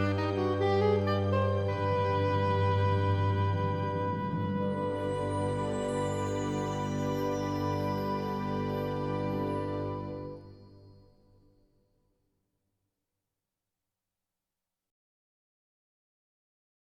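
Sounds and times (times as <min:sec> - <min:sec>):
orchestra: 0:00.0 - 0:11.2.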